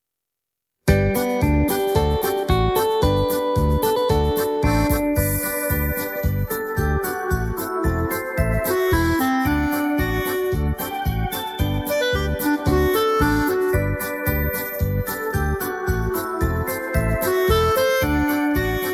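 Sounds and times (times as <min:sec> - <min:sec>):
instrumental music: 0:00.9 - 0:18.9.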